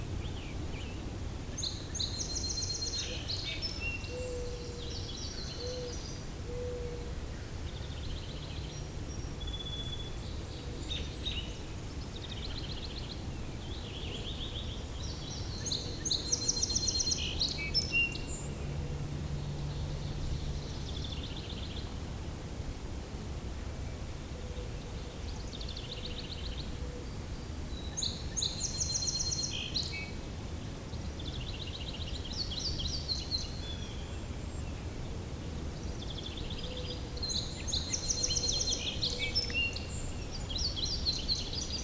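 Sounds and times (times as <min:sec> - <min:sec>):
songbirds singing: 0:00.0 - 0:41.8.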